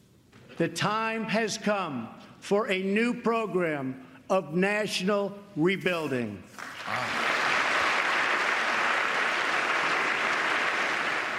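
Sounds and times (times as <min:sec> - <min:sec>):
speech: 0:00.6 - 0:07.2
audience standing and applauding: 0:06.6 - 0:11.3.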